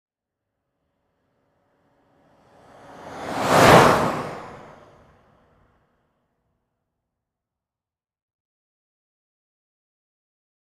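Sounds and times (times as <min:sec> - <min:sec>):
Ford Expedition driving very fast: 0:01.2 - 0:05.8.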